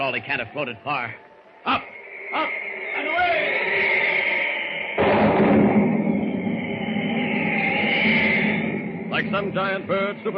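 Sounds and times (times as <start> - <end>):
speech: 0.0 - 3.8, 9.2 - 10.3
rushing storm noise: 1.9 - 10.3
thunder crash: 4.9 - 10.3.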